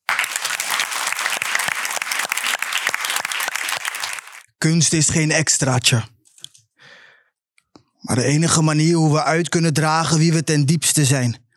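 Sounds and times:
warm applause from an audience: 0.0 - 4.5
speech: 4.6 - 6.2, 8.1 - 11.4.

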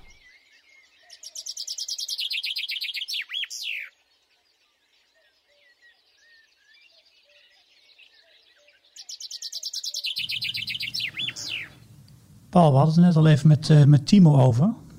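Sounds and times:
chaffinch singing: 1.0 - 3.9, 8.6 - 12.1
speech: 12.6 - 14.8.

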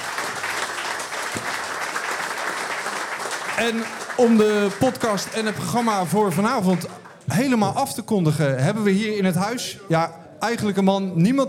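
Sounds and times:
applause: 0.0 - 7.7
speech: 3.6 - 11.4.

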